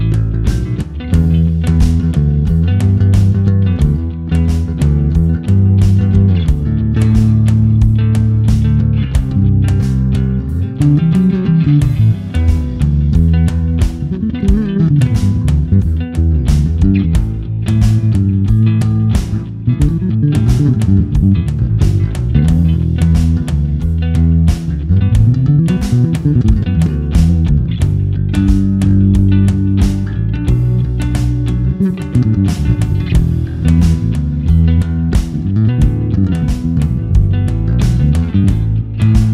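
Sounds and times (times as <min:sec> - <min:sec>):
bass through a compressor: 0:00.0 - 0:39.3.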